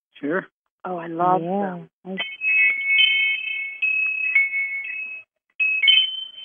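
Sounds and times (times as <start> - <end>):
speech: 0.2 - 2.4
wind chimes ringing: 2.2 - 6.4.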